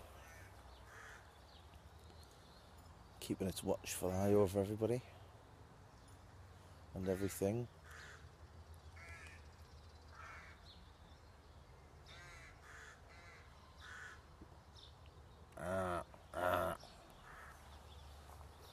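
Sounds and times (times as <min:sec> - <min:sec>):
crows cawing: 0:00.0 - 0:01.4, 0:07.0 - 0:08.4, 0:09.0 - 0:09.5, 0:10.1 - 0:10.7, 0:12.0 - 0:14.3, 0:15.6 - 0:18.0
speech: 0:03.3 - 0:05.2, 0:07.0 - 0:08.1.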